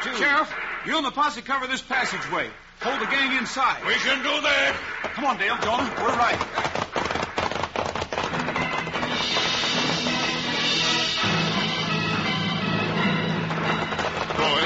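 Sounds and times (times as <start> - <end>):
speech: 0.2 - 6.7
horses riding away: 5.2 - 11.2, 12.2 - 14.6.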